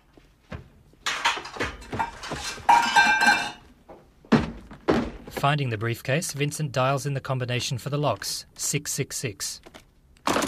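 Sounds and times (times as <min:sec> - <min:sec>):
someone rummaging through a kitchen cupboard: 0:00.5 - 0:03.6
clinks of dishes and metal objects: 0:01.0 - 0:03.7
speech: 0:05.4 - 0:09.7.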